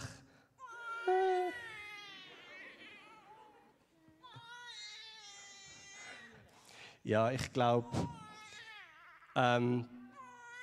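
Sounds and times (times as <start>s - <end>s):
baby crying: 0.6s - 6.4s, 8.0s - 9.4s, 10.0s - 10.6s
speech: 7.0s - 8.2s, 9.4s - 10.0s.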